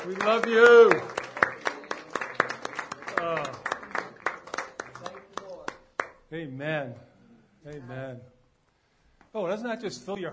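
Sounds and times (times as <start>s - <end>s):
speech: 0.0s - 1.2s, 6.3s - 8.4s, 9.3s - 10.3s
audience clapping hands: 0.0s - 6.3s.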